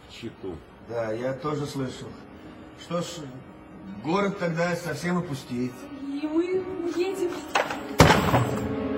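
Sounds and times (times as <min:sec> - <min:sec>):
speech: 0:00.2 - 0:08.4
clock crashing on the floor: 0:07.5 - 0:08.8.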